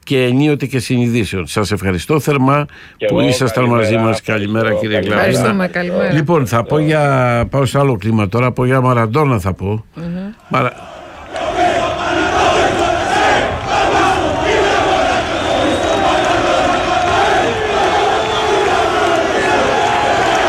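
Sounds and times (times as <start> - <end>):
speech: 0.1 - 11.0
stadium crowd chanting a player's name: 10.4 - 20.4.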